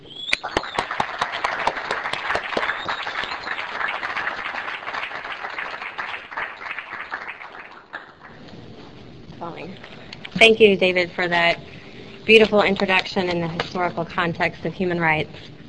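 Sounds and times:
audience applause: 0.3 - 8.5
speech: 10.4 - 11.7, 12.3 - 15.6.

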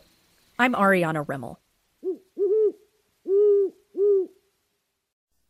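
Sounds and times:
speech: 0.6 - 1.6
great horned owl hooting: 2.0 - 4.5.

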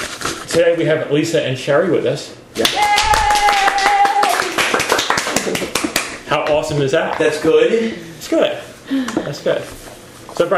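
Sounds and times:
speech: 0.6 - 3.0, 6.4 - 9.8, 10.4 - 10.5
man clapping: 2.6 - 7.4.

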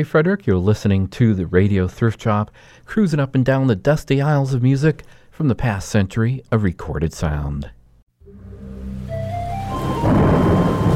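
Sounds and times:
speech: 0.0 - 7.8
heavy rain downpour: 8.7 - 10.9
low rolling thunder: 9.5 - 10.9.

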